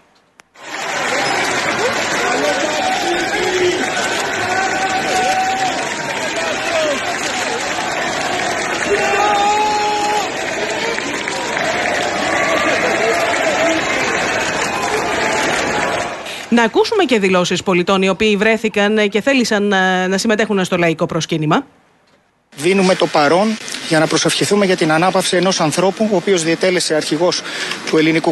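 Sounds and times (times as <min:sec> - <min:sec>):
large crowd applauding as coffin is carried: 0:00.5 - 0:17.0, 0:22.6 - 0:28.3
scattered shouts: 0:00.6 - 0:16.2
speech: 0:16.6 - 0:21.8, 0:22.6 - 0:28.3.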